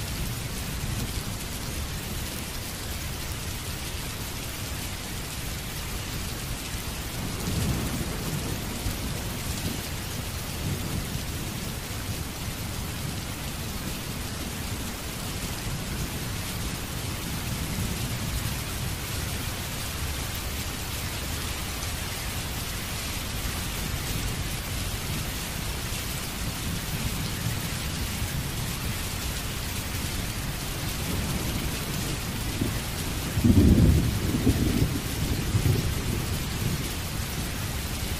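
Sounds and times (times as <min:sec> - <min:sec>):
rain: 0:00.0 - 0:38.1
thunder: 0:31.0 - 0:37.1.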